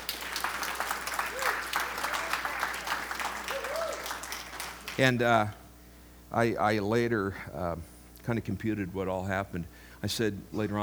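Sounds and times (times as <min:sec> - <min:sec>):
audience applause: 0:00.0 - 0:05.6
speech: 0:05.0 - 0:05.6, 0:06.3 - 0:10.8.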